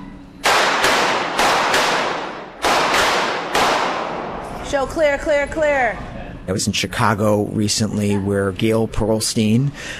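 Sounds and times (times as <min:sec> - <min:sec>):
gunshots at a shooting range drill: 0:00.4 - 0:04.5
speech: 0:04.7 - 0:09.9.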